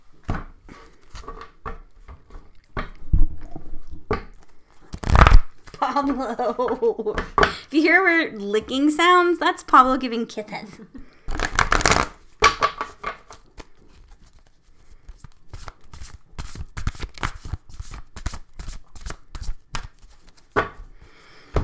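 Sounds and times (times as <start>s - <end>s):
deck of oracle cards being shuffled and cut: 4.9s - 5.8s, 11.3s - 12.2s, 13.3s - 20.5s
speech: 5.9s - 11.0s.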